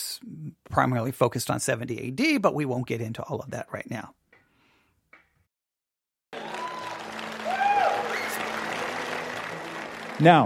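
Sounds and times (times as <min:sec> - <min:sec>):
speech: 0:00.0 - 0:04.2, 0:10.2 - 0:10.4
audience applause: 0:06.3 - 0:10.4.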